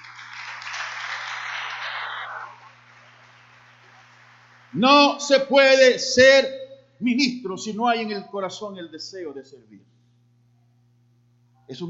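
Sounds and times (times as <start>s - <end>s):
audience applauding: 0.0s - 4.8s
speech: 4.7s - 9.9s, 11.7s - 11.8s.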